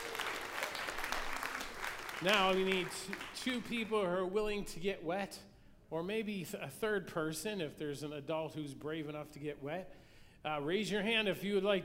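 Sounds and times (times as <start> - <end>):
audience clapping: 0.0 - 4.0
speech: 2.2 - 11.8.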